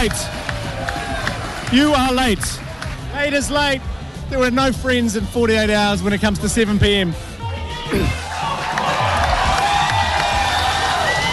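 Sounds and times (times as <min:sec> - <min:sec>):
speech: 0:00.0 - 0:00.4, 0:01.7 - 0:07.3, 0:07.9 - 0:08.2
crowd applause and cheering: 0:00.0 - 0:04.6, 0:07.9 - 0:11.3.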